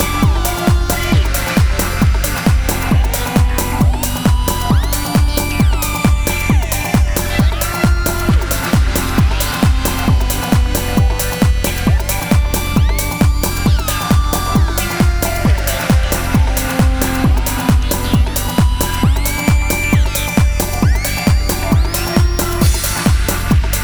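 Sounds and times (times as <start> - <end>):
oscillator tones in octaves: 0.0 - 23.8.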